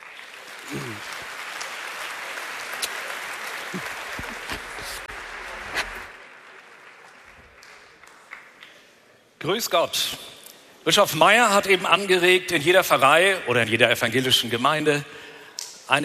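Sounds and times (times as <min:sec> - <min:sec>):
audience applause: 0:00.0 - 0:08.6
speech: 0:00.7 - 0:01.3, 0:09.5 - 0:15.2, 0:15.9 - 0:16.0.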